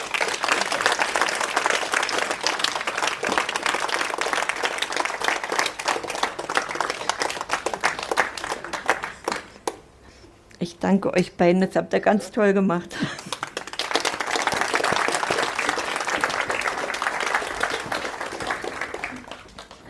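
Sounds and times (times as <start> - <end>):
audience clapping: 0.0 - 10.0, 13.0 - 19.8
speech: 10.8 - 13.3.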